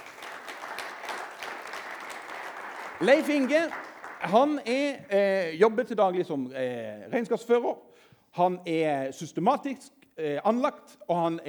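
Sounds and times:
audience applause: 0.0 - 4.6
speech: 3.0 - 11.4.

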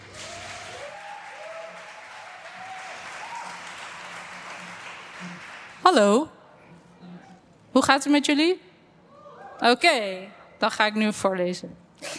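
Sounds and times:
faint whistles and cheers from an audience: 0.0 - 4.4
audience applause: 0.0 - 5.9
speech: 5.2 - 6.4, 7.8 - 8.6, 9.6 - 12.1.

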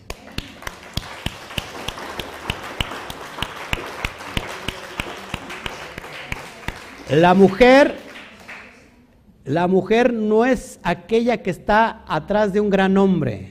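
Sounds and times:
audience applause: 0.0 - 8.9
speech: 7.1 - 8.0, 9.5 - 13.4.

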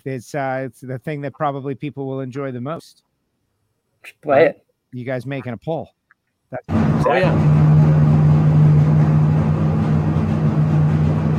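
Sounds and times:
speech: 0.0 - 3.1, 4.0 - 8.0
Engine Performance Expo LS engine revving at high RPM: 6.7 - 11.3.

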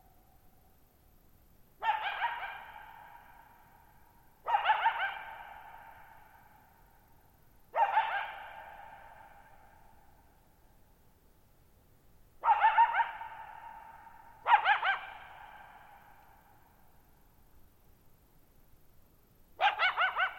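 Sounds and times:
coyote barking: 1.8 - 3.8, 4.4 - 6.7, 7.7 - 10.0, 12.4 - 16.4, 19.6 - 20.3.

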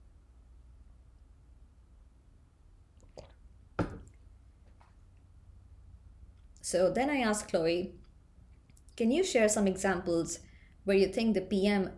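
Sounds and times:
sipping tea: 2.9 - 4.2
speech: 6.6 - 8.0, 9.0 - 11.9.

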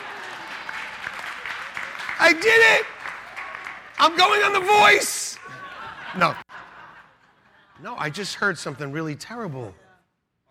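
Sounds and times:
audience applause: 0.0 - 6.1
speech: 2.2 - 3.0, 4.0 - 5.2, 6.1 - 6.4, 7.8 - 9.8
laughter: 4.2 - 8.4.

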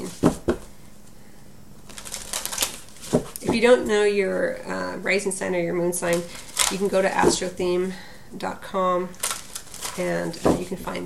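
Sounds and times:
cards drawn from a Life Purpose oracle deck: 1.8 - 3.4, 6.1 - 6.9, 9.1 - 10.8
speech: 3.6 - 9.2, 10.0 - 11.0.

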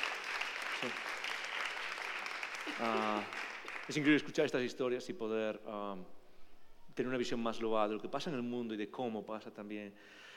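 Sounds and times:
crowd applauding: 0.0 - 4.5
speech: 0.8 - 1.1, 2.8 - 6.2, 7.0 - 10.3.

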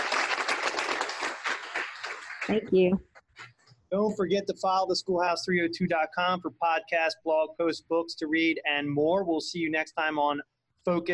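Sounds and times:
studio audience applause: 0.0 - 2.6
speech: 2.5 - 11.1.

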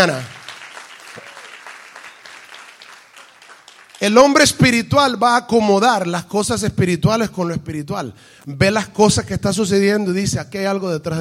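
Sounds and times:
speech: 0.0 - 0.4, 4.0 - 11.1
audience applauding loudly: 0.0 - 4.7.

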